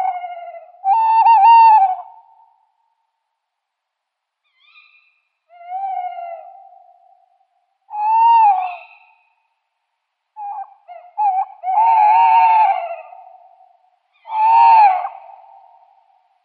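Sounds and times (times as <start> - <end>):
tawny owl pair quavering hoots in display: 0.0 - 2.5, 4.5 - 7.3, 7.9 - 9.4, 10.4 - 16.0.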